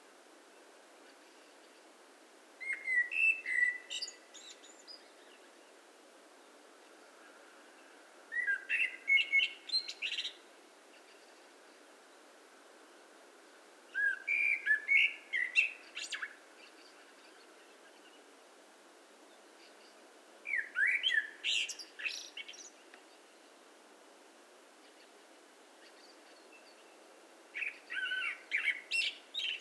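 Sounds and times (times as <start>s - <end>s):
Common blackbird song: 2.6s - 5.8s, 7.2s - 11.5s, 13.9s - 18.4s, 19.3s - 23.4s, 24.8s - 29.5s.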